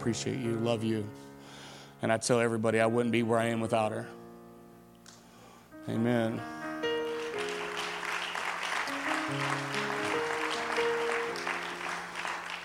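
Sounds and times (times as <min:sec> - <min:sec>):
speech: 0:00.0 - 0:01.3, 0:02.0 - 0:04.2, 0:05.8 - 0:06.6, 0:09.3 - 0:09.8
audience applause: 0:07.1 - 0:12.6.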